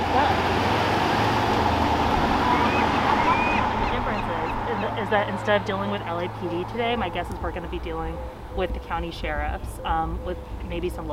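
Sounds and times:
police car driving by on a road: 0:00.0 - 0:08.6
speech: 0:05.1 - 0:11.1.

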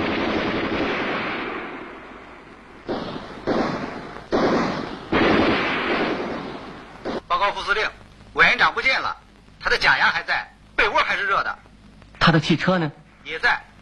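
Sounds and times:
gunfire: 0:00.0 - 0:07.5
speech: 0:07.4 - 0:11.6, 0:12.2 - 0:13.7.

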